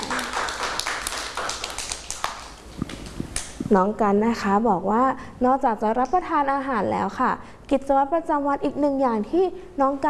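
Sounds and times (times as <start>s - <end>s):
children clapping: 0.0s - 3.6s
speech: 3.7s - 10.0s.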